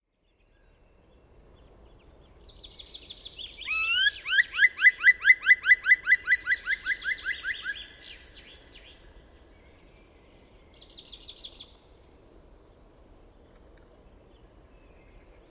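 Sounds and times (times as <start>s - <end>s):
black woodpecker ringing call series: 3.7s - 7.9s.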